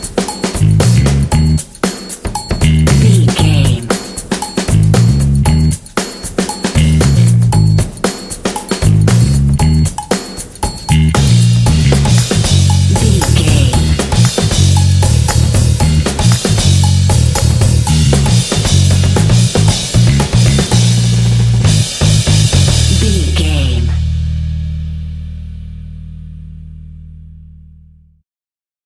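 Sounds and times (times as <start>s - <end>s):
hip funky drums: 0.0s - 25.5s
percussion: 0.0s - 25.5s
bass line: 0.6s - 1.6s, 2.6s - 3.9s, 4.7s - 5.8s, 6.8s - 7.9s, 8.8s - 10.0s, 10.9s - 28.2s.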